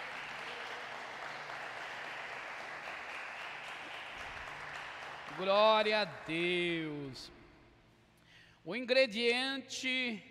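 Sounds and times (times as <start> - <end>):
audience applause: 0.0 - 7.1
speech: 5.4 - 7.4, 8.7 - 10.2.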